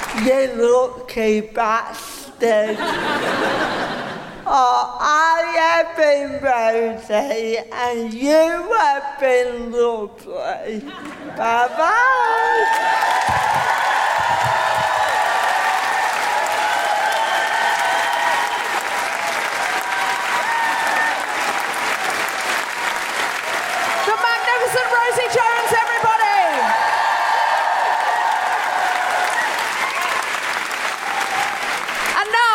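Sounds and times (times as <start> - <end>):
audience applause: 0.0 - 0.2, 12.2 - 32.4
speech: 0.2 - 3.9, 4.5 - 13.4
laughter: 2.6 - 4.4, 10.8 - 12.0.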